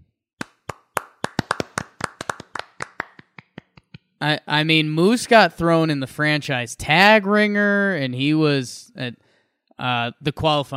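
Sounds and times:
hand clapping: 0.4s - 4.2s
speech: 4.2s - 10.7s.

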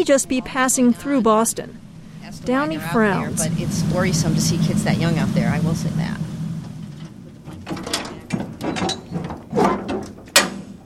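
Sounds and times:
speech: 0.0s - 6.3s
unlocking metal storage container door: 6.9s - 10.8s.

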